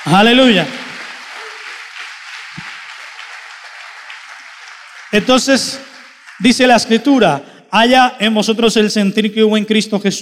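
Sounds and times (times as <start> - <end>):
speech: 0.0 - 0.8, 5.1 - 10.1
audience applause: 0.0 - 6.8.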